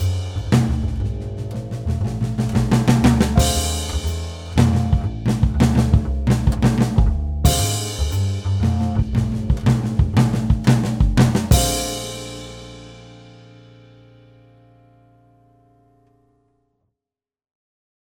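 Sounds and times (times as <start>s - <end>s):
swing drum fills: 0.0s - 14.3s.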